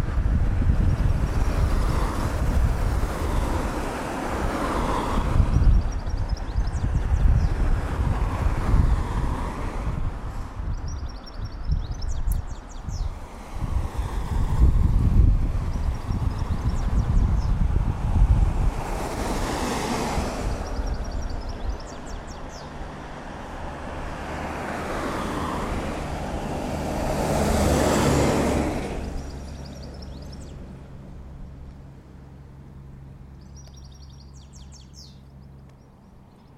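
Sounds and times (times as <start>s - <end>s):
traffic at a bus stop: 0.0s - 36.5s
birds at a bus stop: 3.0s - 7.8s, 10.6s - 13.2s, 15.6s - 17.6s, 19.6s - 25.6s, 27.2s - 31.8s, 33.2s - 36.5s.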